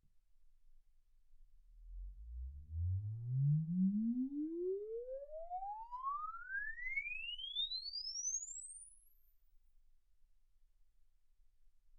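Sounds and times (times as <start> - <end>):
exponential sine sweep from 10 Hz to 24 kHz: 3.4 - 9.3.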